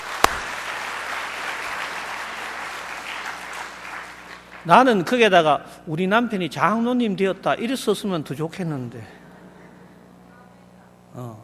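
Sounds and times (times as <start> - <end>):
audience applause: 0.0 - 5.0
speech: 4.6 - 9.2, 11.2 - 11.4.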